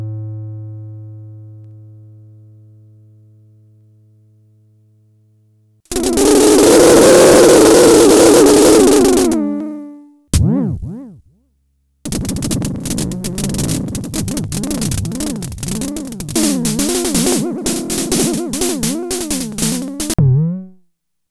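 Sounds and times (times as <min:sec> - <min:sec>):
Fricke Schlagzwerg percussion effect: 0:05.9 - 0:09.4, 0:12.1 - 0:20.2.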